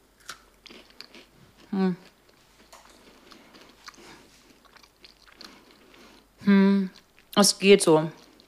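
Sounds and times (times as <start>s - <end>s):
crunchy bites of a slightly burnt home-baked Christmas cookie: 0.2s - 6.3s
moist chewing: 0.2s - 6.3s, 8.2s - 8.4s
speech: 1.7s - 2.1s, 7.4s - 8.2s.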